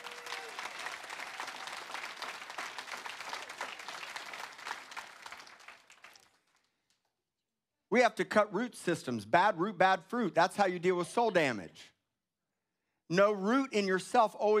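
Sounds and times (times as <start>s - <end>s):
audience clapping hands: 0.0s - 7.0s
speech: 7.9s - 11.9s, 13.1s - 14.5s.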